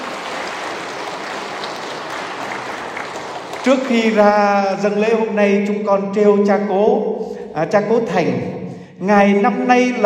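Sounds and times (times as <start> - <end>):
church congregation clapping at a parish Mass: 0.0 - 4.8
speech: 3.6 - 10.0.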